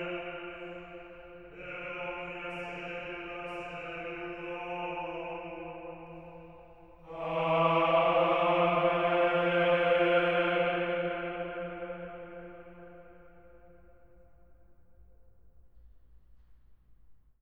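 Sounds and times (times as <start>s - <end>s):
person chanting a Latin oration: 0.0s - 12.6s.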